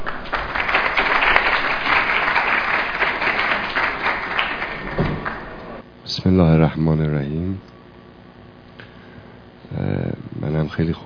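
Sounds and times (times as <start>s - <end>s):
audience applause: 0.0s - 5.8s
speech: 6.3s - 7.7s, 10.7s - 11.0s.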